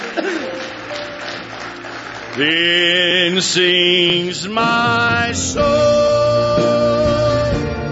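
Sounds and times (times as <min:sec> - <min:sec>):
audience clapping hands: 0:00.0 - 0:04.3
speech: 0:02.4 - 0:07.8.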